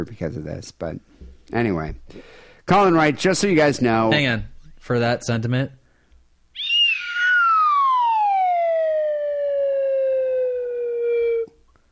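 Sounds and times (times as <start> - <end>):
speech: 0.0 - 5.8
slide whistle: 6.6 - 11.5.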